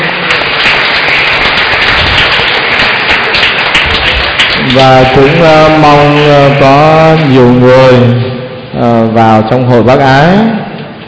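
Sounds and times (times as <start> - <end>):
crowd applause: 0.0 - 8.2
speech: 4.7 - 10.6.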